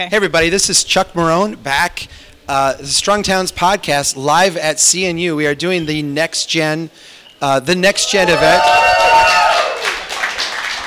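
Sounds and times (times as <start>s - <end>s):
speech: 0.0s - 9.0s
crowd at a live event applauding: 8.1s - 10.8s.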